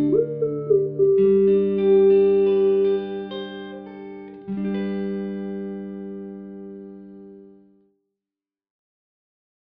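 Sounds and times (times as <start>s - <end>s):
cute and heroic ballad and rock music: 0.0s - 7.4s.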